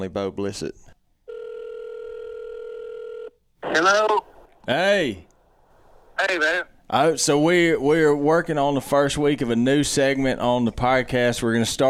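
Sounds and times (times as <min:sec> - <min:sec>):
speech: 0:00.0 - 0:00.9, 0:03.6 - 0:05.3, 0:06.2 - 0:11.8
electronic telephone ring tone: 0:01.3 - 0:03.4.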